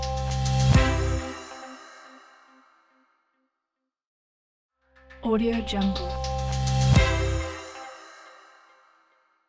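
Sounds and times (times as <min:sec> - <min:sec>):
upbeat corporate logo music: 0:00.2 - 0:01.6, 0:05.9 - 0:07.9.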